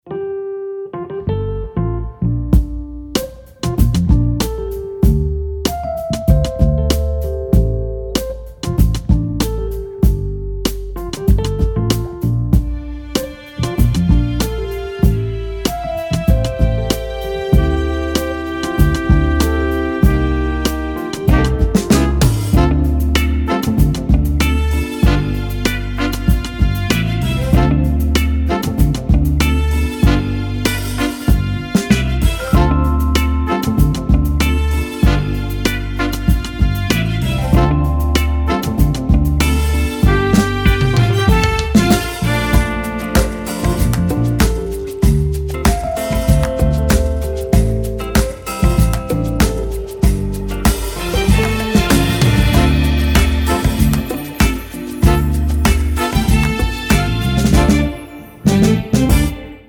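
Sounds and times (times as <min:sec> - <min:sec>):
soul music: 0:00.0 - 0:59.6.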